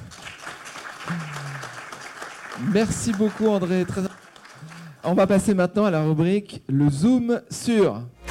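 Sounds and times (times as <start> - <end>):
audience applause: 0.0 - 5.1
speech: 2.6 - 4.2, 5.0 - 8.2.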